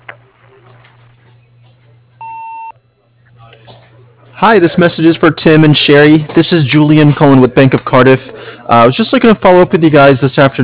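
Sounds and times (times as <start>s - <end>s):
answering machine tone: 2.2s - 2.8s
speech: 4.4s - 10.6s.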